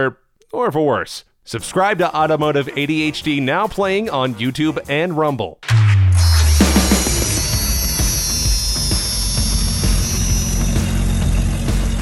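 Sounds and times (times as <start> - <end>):
speech: 0.0 - 5.7
Jeep Wrangler YJ straight-six engine running: 6.5 - 12.0.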